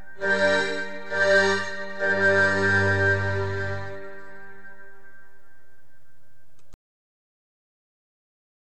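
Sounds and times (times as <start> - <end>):
musical accompaniment: 0.0 - 6.4.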